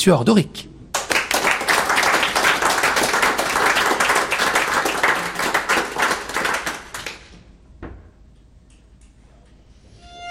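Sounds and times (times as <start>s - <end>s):
speech: 0.0s - 0.7s
audience applause: 1.0s - 7.4s.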